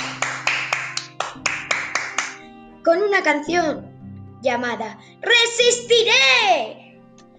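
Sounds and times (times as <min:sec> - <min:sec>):
neighbours clapping: 0:00.0 - 0:02.4
speech: 0:02.8 - 0:06.8.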